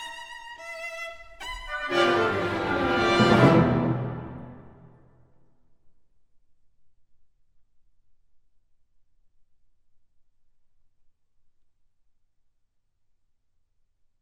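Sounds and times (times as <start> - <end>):
cello playing: 0.0 - 5.0.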